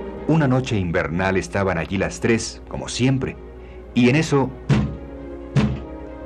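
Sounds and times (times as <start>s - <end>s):
speech: 0.3s - 4.7s
heavy knocking on a wooden door: 4.7s - 5.0s, 5.5s - 5.9s.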